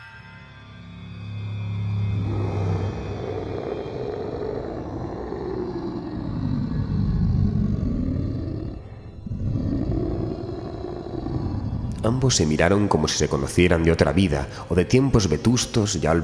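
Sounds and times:
werewolf howling at the moon: 1.4s - 13.4s
speech: 12.0s - 16.2s.

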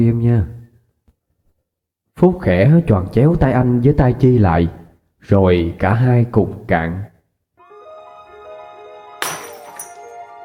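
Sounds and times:
speech: 0.0s - 0.6s, 2.2s - 7.1s
soft melodic music: 7.6s - 10.4s
glasses falling and shattering on a cold floor: 9.2s - 10.2s.

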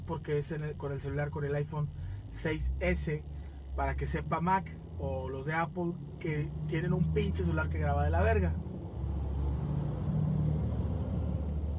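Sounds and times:
speech: 0.1s - 8.7s
loud truck passing by: 8.5s - 11.7s.

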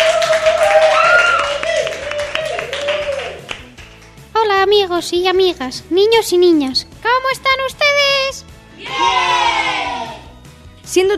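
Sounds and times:
applause and clapping: 0.0s - 4.4s
speech: 4.7s - 9.7s, 10.9s - 11.1s.

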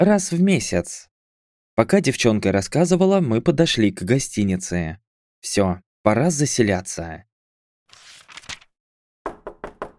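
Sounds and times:
speech: 0.0s - 1.1s, 1.8s - 7.3s
cautious knock on an office door: 9.3s - 9.9s.

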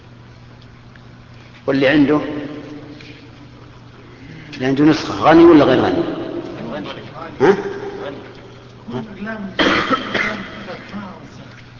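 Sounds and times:
speech: 1.7s - 2.4s, 4.6s - 6.2s, 6.8s - 8.3s, 8.9s - 11.2s
listener sneezing: 9.6s - 10.6s.

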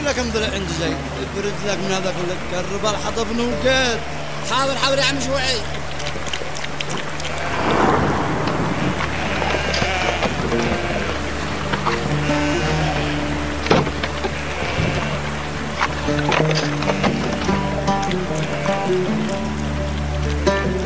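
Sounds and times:
steady rain: 0.0s - 20.8s
speech: 0.1s - 5.9s
thunder rumbling: 7.4s - 12.3s.

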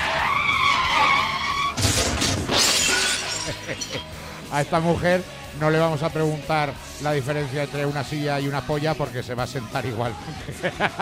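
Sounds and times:
car tires skidding with a high-pitched squeal: 0.0s - 1.9s
crash with shattering debris: 1.7s - 4.0s
laughter: 3.3s - 4.1s, 10.1s - 11.0s
speech: 3.9s - 11.0s.

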